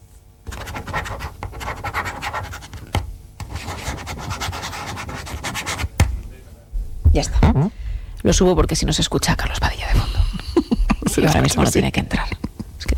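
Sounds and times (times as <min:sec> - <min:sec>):
pen scratching on paper: 0:00.5 - 0:05.9
speech: 0:07.2 - 0:09.8, 0:11.2 - 0:12.4
laughter: 0:10.1 - 0:12.8.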